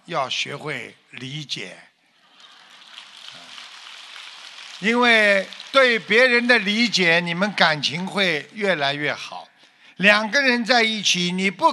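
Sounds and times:
speech: 0.1s - 1.9s, 4.8s - 11.7s
audience applause: 2.3s - 8.1s.

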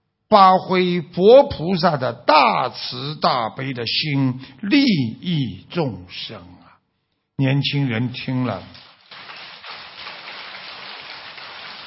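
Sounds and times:
speech: 0.3s - 6.6s, 7.4s - 8.8s
crowd applauding: 8.7s - 11.8s.

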